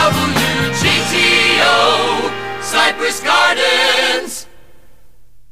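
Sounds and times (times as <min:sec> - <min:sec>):
station ID jingle: 0:00.1 - 0:04.3.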